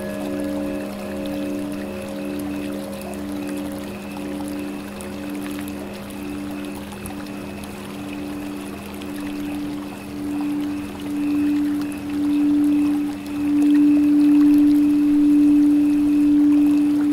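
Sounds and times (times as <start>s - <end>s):
Tibetan singing bowls: 0.0s - 17.1s
flowing water: 0.0s - 17.1s.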